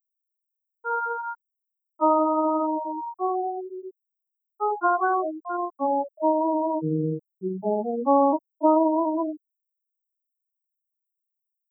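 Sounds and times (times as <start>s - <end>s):
guitar: 0.9s - 1.4s, 2.0s - 3.9s, 4.6s - 9.4s.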